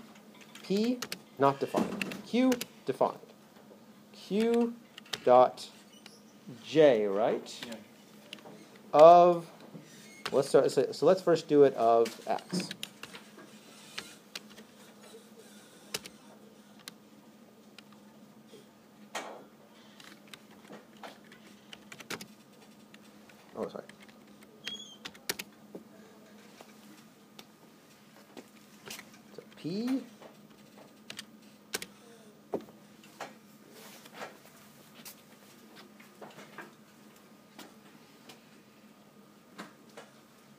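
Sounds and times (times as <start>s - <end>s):
typing on a computer keyboard: 0.4s - 1.2s, 2.0s - 2.7s, 4.4s - 5.3s, 12.6s - 13.2s, 15.8s - 17.0s, 20.0s - 25.5s, 29.9s - 32.0s
speech: 0.7s - 3.3s, 4.2s - 5.8s, 6.5s - 7.9s, 8.9s - 9.5s, 10.3s - 12.8s.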